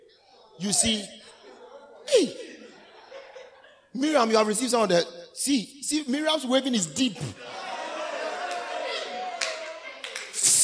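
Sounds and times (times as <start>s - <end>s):
laughter: 0.4s - 4.5s, 7.2s - 10.6s
speech: 0.6s - 1.2s, 2.1s - 2.5s, 4.0s - 7.5s
hand claps: 9.4s - 10.6s.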